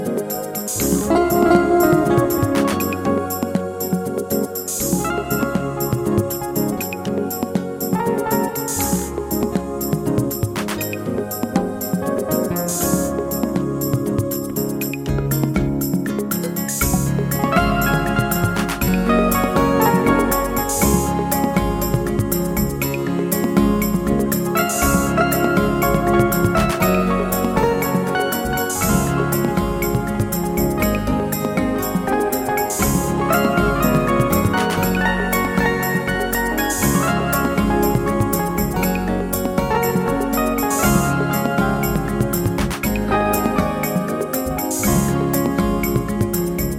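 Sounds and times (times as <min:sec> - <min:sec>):
bossa nova music: 0:00.0 - 0:46.7.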